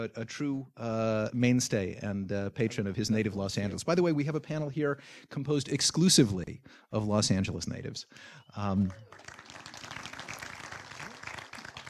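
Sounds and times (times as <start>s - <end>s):
speech: 0.0s - 9.4s
audience clapping: 8.9s - 11.8s.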